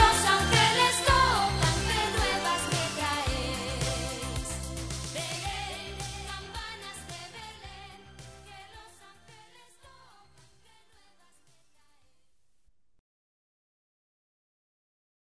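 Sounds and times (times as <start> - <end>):
Christmas carol: 0.0 - 11.0.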